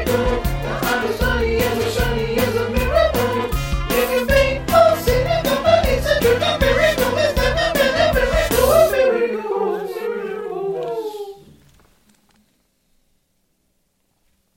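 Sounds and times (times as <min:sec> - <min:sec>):
music with vocals: 0:00.0 - 0:11.6.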